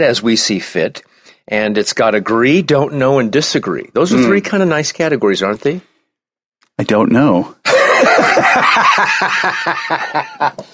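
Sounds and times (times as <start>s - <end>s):
speech: 0.0s - 5.9s, 6.8s - 10.7s
smoker's cough: 4.1s - 4.4s
laughter: 7.6s - 10.7s.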